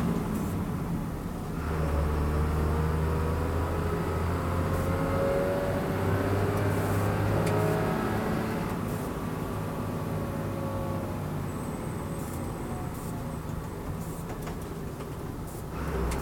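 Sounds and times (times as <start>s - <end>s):
vehicle interior driving noise at start of journey: 0.0s - 16.2s.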